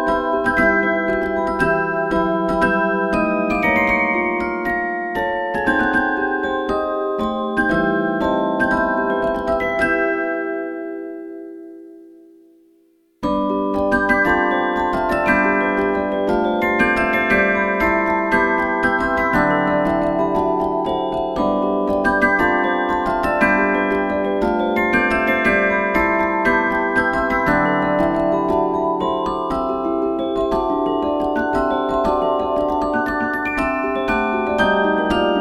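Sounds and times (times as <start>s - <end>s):
music machine left cylinder: 0.0s - 11.3s, 13.2s - 35.3s.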